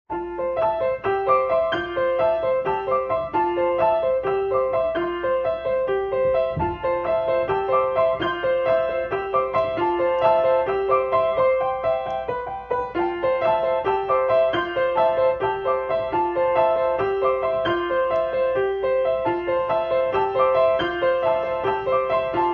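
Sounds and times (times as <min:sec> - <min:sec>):
piano in seven four: 0:00.1 - 0:22.5.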